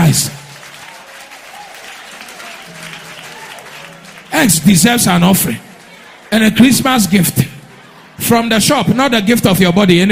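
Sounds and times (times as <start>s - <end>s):
audience clapping: 0.0s - 7.9s
speech: 0.1s - 0.4s, 4.4s - 5.7s, 6.3s - 7.6s, 8.2s - 10.1s.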